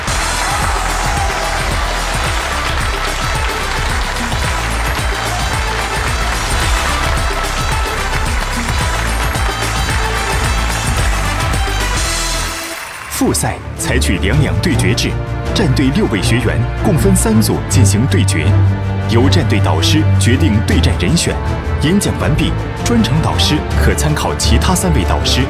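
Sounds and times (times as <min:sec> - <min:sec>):
pounding low beat: 0:00.0 - 0:12.5
audience applause: 0:00.0 - 0:13.6
speech: 0:13.2 - 0:25.4.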